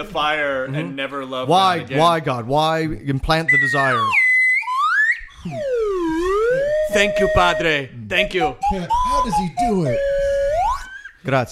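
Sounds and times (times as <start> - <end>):
speech: 0.0 - 4.2, 5.4 - 5.7, 6.9 - 10.1, 11.2 - 11.5
slide whistle: 3.4 - 11.2.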